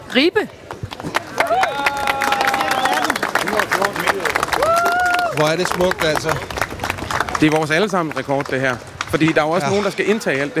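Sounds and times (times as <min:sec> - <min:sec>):
speech: 0:00.1 - 0:02.0, 0:05.4 - 0:06.5, 0:07.4 - 0:10.5
crowd applause celebrating a record: 0:00.7 - 0:10.4
whoops and cheering voices: 0:01.4 - 0:03.2, 0:04.5 - 0:05.5.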